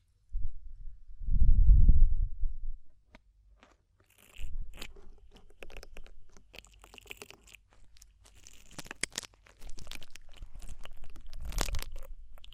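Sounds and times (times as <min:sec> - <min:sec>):
deep muffled rumble: 0:00.4 - 0:03.0.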